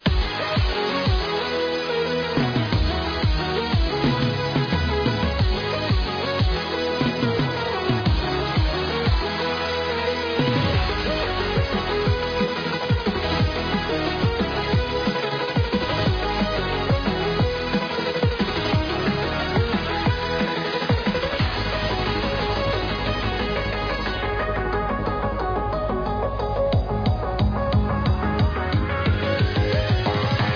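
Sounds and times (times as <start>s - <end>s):
background music: 0.0s - 30.5s.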